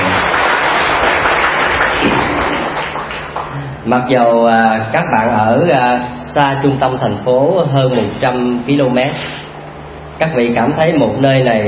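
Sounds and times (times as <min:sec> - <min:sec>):
audience applause: 0:00.0 - 0:03.6
speech: 0:03.9 - 0:09.4, 0:10.2 - 0:11.6.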